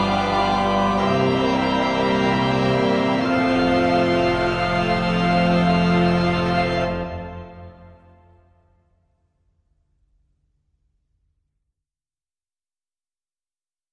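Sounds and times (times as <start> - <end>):
Sephardi Hanukkah hymn singing: 0.0 - 8.2.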